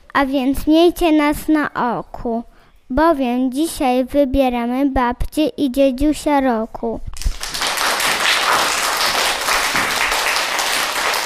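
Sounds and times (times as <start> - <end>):
speech: 0.2 - 7.1
audience clapping: 7.2 - 11.2.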